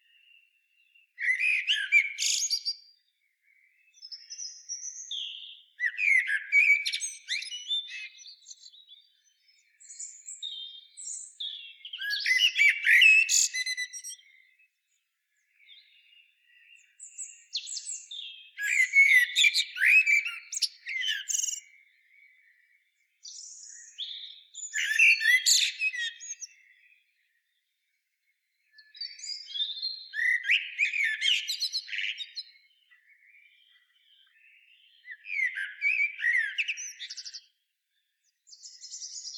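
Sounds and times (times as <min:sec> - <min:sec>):
common blackbird singing: 0:00.0 - 0:27.6, 0:28.5 - 0:37.6, 0:38.3 - 0:39.3.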